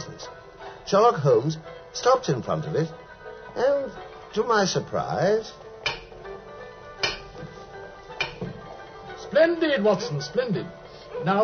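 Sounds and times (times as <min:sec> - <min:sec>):
speech: 0:00.9 - 0:03.0, 0:03.6 - 0:05.6, 0:09.3 - 0:11.4
stick knocking on the pavement: 0:08.2 - 0:08.6.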